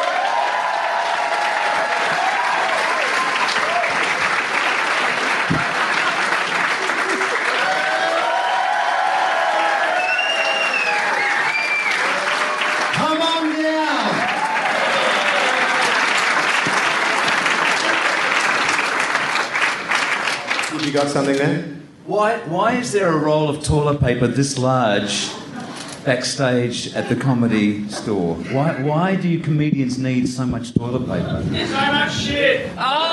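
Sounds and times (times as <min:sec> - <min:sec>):
whoops and cheers: 0:00.0 - 0:04.2, 0:07.3 - 0:12.9, 0:13.8 - 0:16.2
audience applause welcoming a guest: 0:00.0 - 0:21.5
speech: 0:20.9 - 0:25.4, 0:26.0 - 0:33.1.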